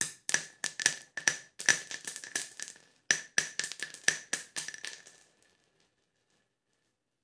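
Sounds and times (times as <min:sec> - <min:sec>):
bullet shell: 0:00.0 - 0:05.5.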